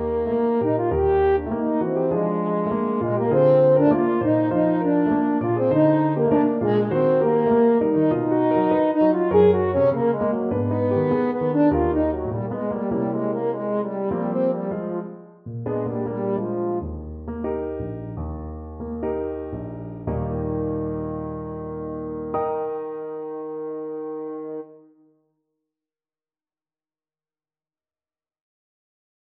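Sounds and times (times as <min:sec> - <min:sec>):
French horn playing a tango: 0:00.0 - 0:18.0, 0:20.4 - 0:24.9.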